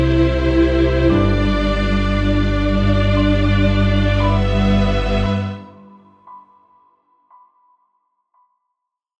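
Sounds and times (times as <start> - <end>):
ambient orchestral harmony: 0.0 - 6.4.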